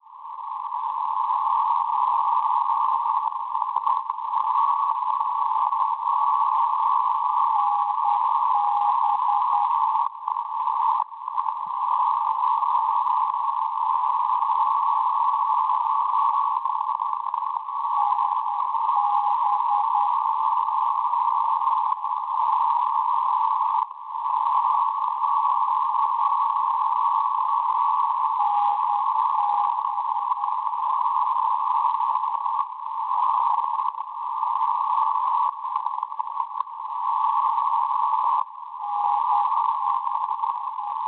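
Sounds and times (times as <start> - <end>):
NDB radio beacon signal on 361 kHz: 1.3 - 41.0.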